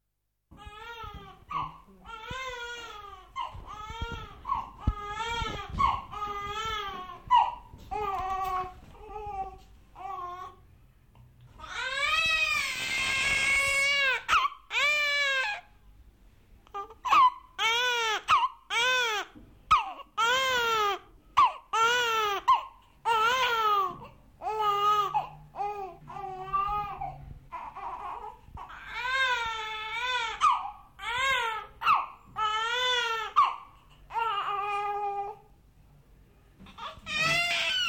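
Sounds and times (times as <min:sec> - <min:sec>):
newborn baby crying: 0:00.5 - 0:10.6, 0:11.5 - 0:15.8, 0:16.6 - 0:35.5, 0:36.6 - 0:37.8.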